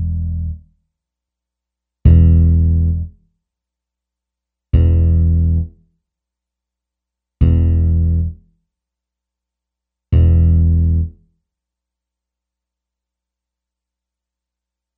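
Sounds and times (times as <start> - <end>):
bass: 0.0 - 0.9, 2.0 - 3.3, 4.7 - 5.9, 7.4 - 8.6, 10.1 - 11.3.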